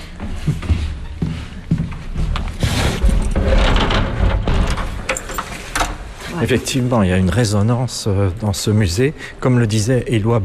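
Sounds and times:
speech: 0.4s - 0.8s, 6.4s - 10.4s
door being closed: 2.6s - 6.2s.

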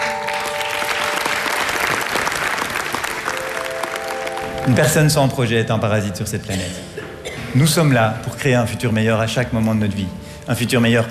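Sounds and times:
audience applause: 0.0s - 5.2s
speech: 4.7s - 6.9s, 7.5s - 11.0s.

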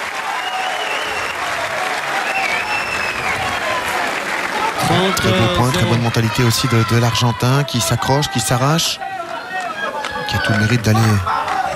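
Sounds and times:
applause at a tennis match: 0.0s - 11.7s
speech: 4.9s - 9.3s, 10.3s - 11.7s.

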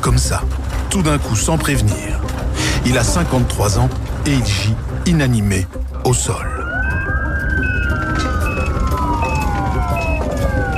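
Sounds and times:
rumbling traffic background: 0.0s - 10.7s
speech: 0.1s - 6.6s
ambulance siren: 6.1s - 10.7s.

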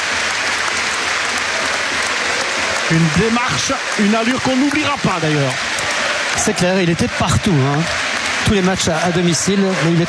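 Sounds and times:
large stadium crowd applauding: 0.0s - 10.0s
speech: 2.9s - 5.8s, 6.4s - 10.0s.

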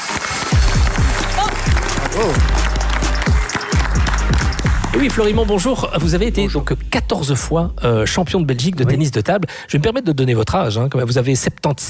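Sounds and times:
audience applause welcoming a guest: 0.0s - 5.5s
speech: 2.2s - 2.6s, 5.0s - 11.8s.

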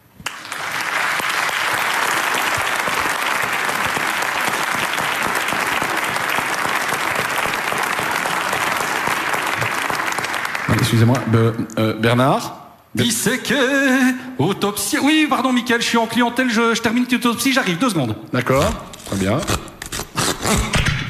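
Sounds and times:
audience applauding loudly: 0.0s - 11.7s
speech: 11.0s - 19.7s, 20.5s - 20.8s.

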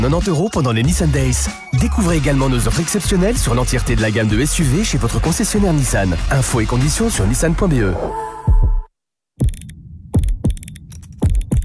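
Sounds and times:
speech: 0.0s - 8.3s
heartbeat sound effect in an advert for a watchmaker in Uccle, Brussels: 8.5s - 11.6s.

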